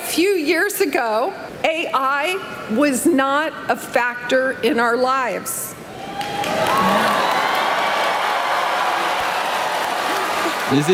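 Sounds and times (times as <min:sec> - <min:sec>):
speech: 0:00.2 - 0:07.1, 0:10.7 - 0:10.9
large crowd applauding and cheering: 0:05.9 - 0:10.9.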